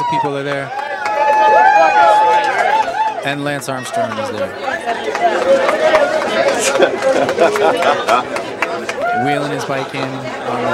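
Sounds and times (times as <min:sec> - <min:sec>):
crowd chatter: 0:00.0 - 0:10.7
speech: 0:00.1 - 0:00.8, 0:03.2 - 0:08.5, 0:09.2 - 0:10.7
laughter: 0:05.0 - 0:09.3.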